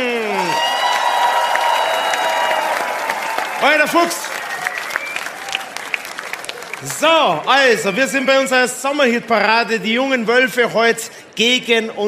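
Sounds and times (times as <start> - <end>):
audience applause: 0.0 - 8.5
speech: 3.6 - 4.3, 6.8 - 12.0.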